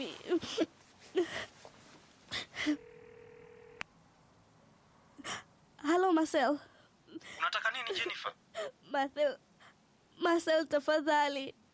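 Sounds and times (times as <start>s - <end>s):
speech: 0.0s - 1.5s, 6.2s - 9.5s, 10.2s - 11.6s
phone line tone as a call is placed: 2.8s - 3.8s.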